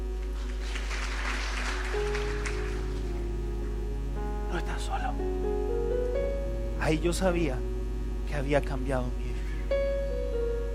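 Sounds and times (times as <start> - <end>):
audience applause: 0.4 - 3.2
sustained musical tones: 0.8 - 10.7
speech: 6.9 - 7.7, 8.3 - 9.3.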